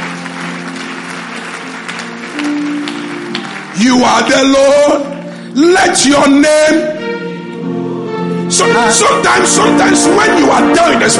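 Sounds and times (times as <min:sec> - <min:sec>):
audience clapping: 0:00.0 - 0:05.5
speech: 0:03.8 - 0:07.0, 0:08.5 - 0:11.1.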